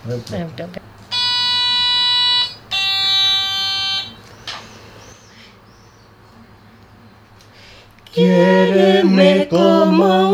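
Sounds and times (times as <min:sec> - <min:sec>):
speech: 0:00.0 - 0:01.0, 0:08.2 - 0:10.3
antique toy sounding musical pitch tones: 0:01.1 - 0:05.1.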